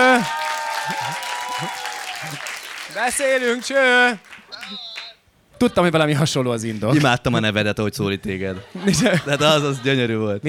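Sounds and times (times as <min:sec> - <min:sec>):
audience applause: 0:00.0 - 0:05.1
speech: 0:01.6 - 0:04.9, 0:05.6 - 0:10.4
laughter: 0:08.4 - 0:10.4.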